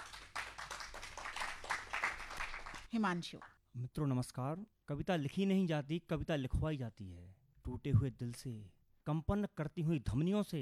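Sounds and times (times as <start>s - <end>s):
audience applause welcoming a poet at a Hindi poetry recital: 0.0s - 2.9s
speech: 2.9s - 10.5s.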